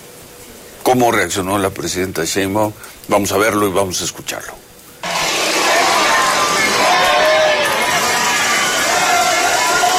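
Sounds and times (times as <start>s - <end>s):
speech: 0.9s - 4.7s
distant crowd shouting: 5.0s - 9.9s.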